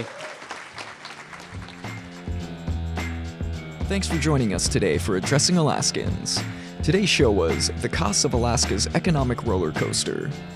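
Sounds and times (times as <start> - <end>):
speech: 0.0 - 0.2, 3.9 - 10.5
round of applause: 0.0 - 2.4.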